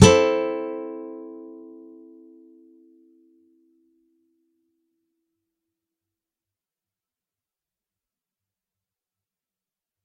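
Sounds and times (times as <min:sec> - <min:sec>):
acoustic music: 0:00.0 - 0:03.3.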